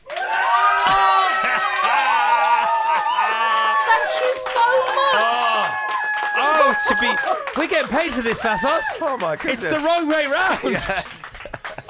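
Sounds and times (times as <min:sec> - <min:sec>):
control room applause and cheering: 0:00.0 - 0:11.8
laughter: 0:01.0 - 0:04.0, 0:06.4 - 0:11.8
speech: 0:06.8 - 0:11.3.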